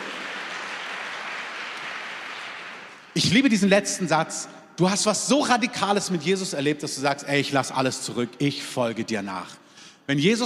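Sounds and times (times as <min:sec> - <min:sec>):
congregation applause during a church service: 0:00.0 - 0:03.4
speech: 0:03.2 - 0:10.4.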